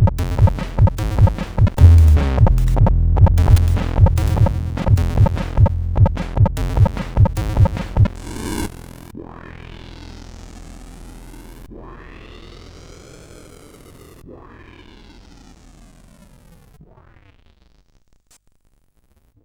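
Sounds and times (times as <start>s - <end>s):
SID chip CSG8580R5 music: 0.0s - 8.2s.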